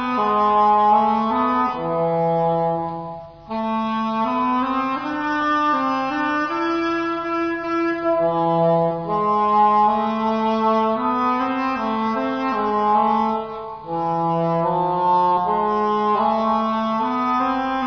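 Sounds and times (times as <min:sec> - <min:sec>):
English horn: 0:00.0 - 0:17.8.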